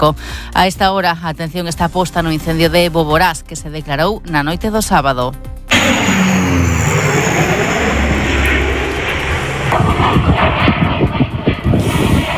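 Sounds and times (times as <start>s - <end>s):
speech: 0.0s - 6.4s, 10.1s - 10.7s
Ejército del Aire firefighting airplanes flying overhead: 5.7s - 12.3s.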